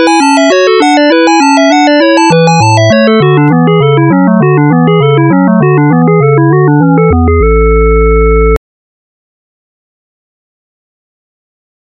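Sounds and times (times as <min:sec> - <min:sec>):
harpsichord toccata from a sonata in A: 0:00.0 - 0:07.7.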